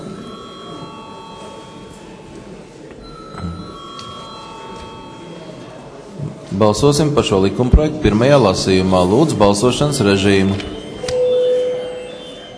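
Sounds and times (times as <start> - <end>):
parliament electric bell ringing before a vote: 0.0 - 6.2, 10.2 - 12.5
low murmur: 0.0 - 12.5
speech: 6.6 - 10.8.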